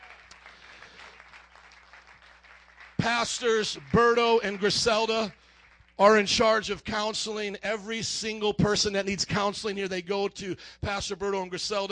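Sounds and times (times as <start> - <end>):
audience hand clapping: 0.0 - 6.6
speech: 3.0 - 5.4, 6.0 - 11.9.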